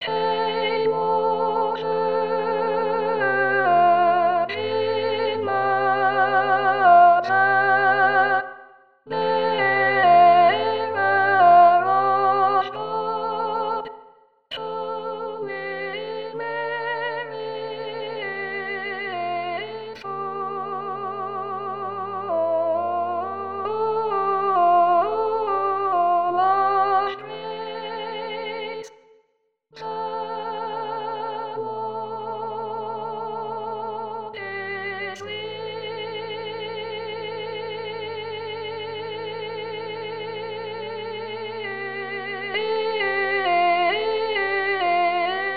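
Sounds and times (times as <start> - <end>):
soprano singing: 0.0 - 28.9, 29.8 - 45.5.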